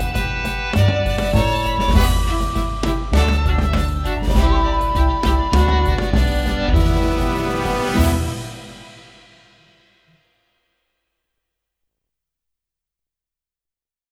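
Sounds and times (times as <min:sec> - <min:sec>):
hornpipe on violin: 0:00.0 - 0:09.4.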